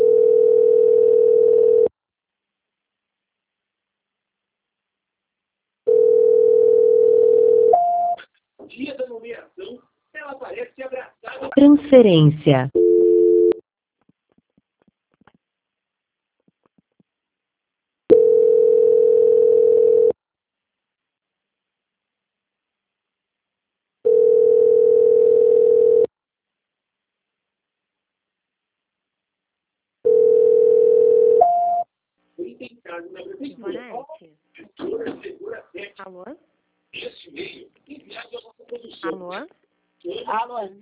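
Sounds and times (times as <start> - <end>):
unanswered telephone call ringing tone: 0.0 - 1.9, 5.9 - 8.2, 12.8 - 13.6, 18.1 - 20.2, 24.0 - 26.1, 30.0 - 31.8
speech: 11.9 - 12.8.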